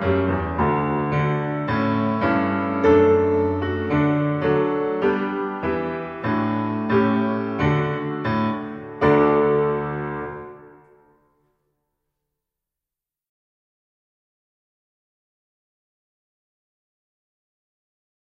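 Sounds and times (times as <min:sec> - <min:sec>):
piano accompaniment for a violin piece: 0:00.0 - 0:11.6.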